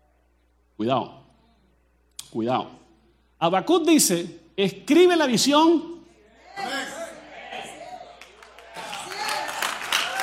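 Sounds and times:
speech: 0.8 - 1.2, 2.3 - 2.8, 3.4 - 6.0
audience applause: 7.6 - 10.2.

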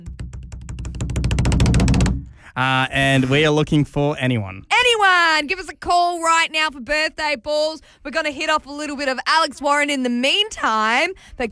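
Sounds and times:
drum roll: 0.0 - 2.4
speech: 2.6 - 11.4.

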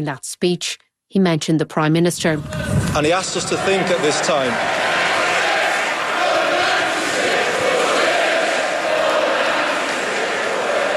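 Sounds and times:
speech: 0.0 - 5.1
stadium crowd chanting: 3.0 - 10.9.

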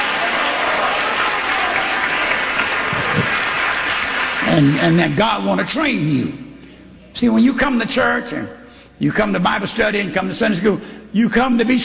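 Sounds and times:
audience clapping: 0.0 - 5.1
speech: 4.6 - 6.4, 7.2 - 11.8.

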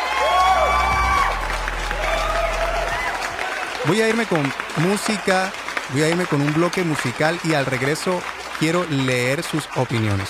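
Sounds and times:
applause: 0.0 - 10.2
speech: 3.8 - 10.2.

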